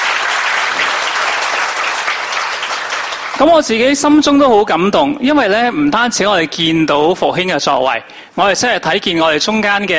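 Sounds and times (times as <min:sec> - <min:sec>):
audience applauding loudly: 0:00.0 - 0:03.8
speech: 0:03.4 - 0:09.9.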